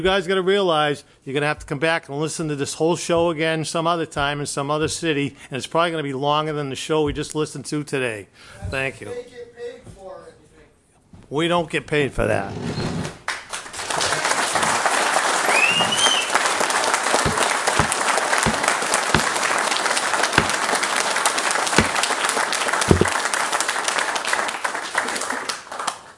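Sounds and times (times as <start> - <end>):
speech: 0.0 - 10.0, 11.3 - 12.9
audience applause at a public meeting: 13.5 - 26.1.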